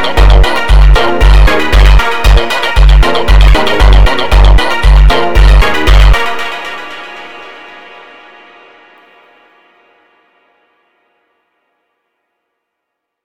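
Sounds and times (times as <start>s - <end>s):
slowed montagem music: 0.0s - 10.3s.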